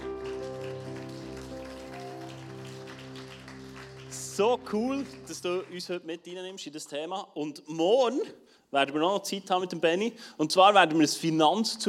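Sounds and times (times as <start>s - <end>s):
audience applause: 0.0s - 6.0s
speech: 4.4s - 11.8s.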